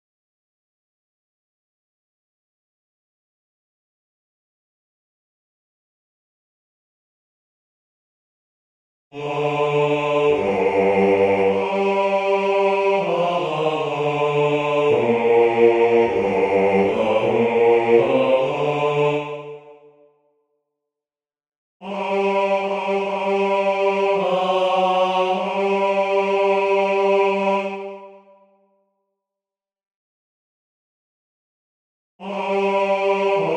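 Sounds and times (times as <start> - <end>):
chorale bass voices: 9.1 - 20.0, 21.8 - 28.4, 32.2 - 33.5.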